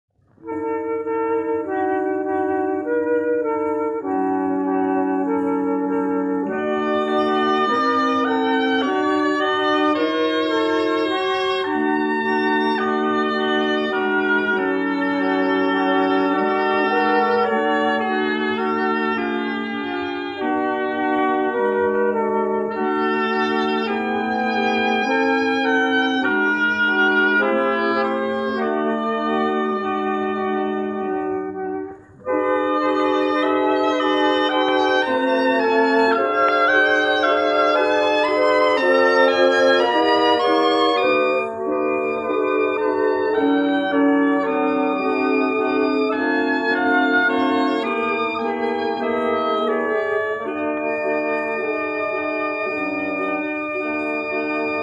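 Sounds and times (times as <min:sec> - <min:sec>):
wind quintet: 0:00.2 - 0:54.8.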